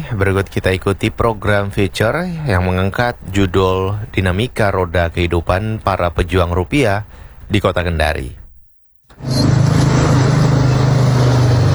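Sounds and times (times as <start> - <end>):
speech: 0.1 - 8.4
rolling wheels: 9.1 - 11.7
street traffic engines roaring: 9.2 - 11.7.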